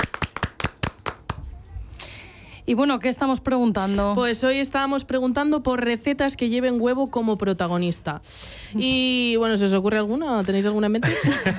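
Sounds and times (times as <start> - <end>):
scattered hand claps applauding a quiz winner: 0.0 - 1.5
speech: 2.7 - 11.5.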